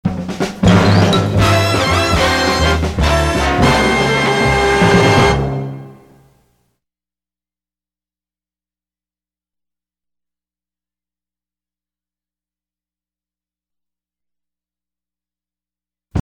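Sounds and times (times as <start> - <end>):
orchestra: 0.1 - 6.3.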